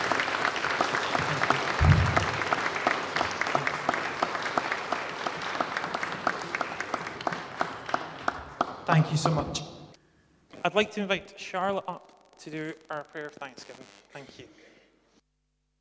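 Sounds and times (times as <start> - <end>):
audience round of applause: 0.0 - 9.7
speech: 9.0 - 9.7, 10.7 - 14.6.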